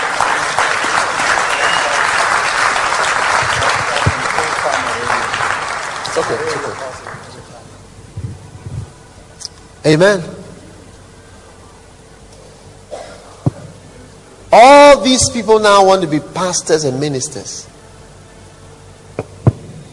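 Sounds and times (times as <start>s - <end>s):
audience applause: 0.0s - 7.6s
speech: 6.2s - 7.1s, 9.8s - 10.4s, 14.6s - 17.7s.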